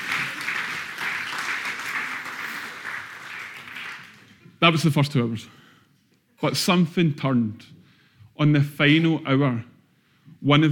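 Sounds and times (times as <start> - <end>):
audience applause: 0.0 - 4.3
speech: 4.6 - 5.6, 6.4 - 7.8, 8.4 - 9.7, 10.4 - 10.7.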